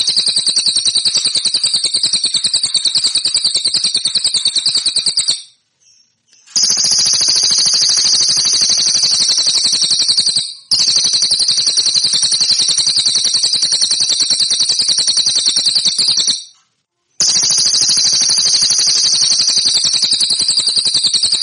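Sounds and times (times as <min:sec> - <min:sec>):
cililin song metallic trill: 0:00.0 - 0:16.6, 0:17.2 - 0:21.4.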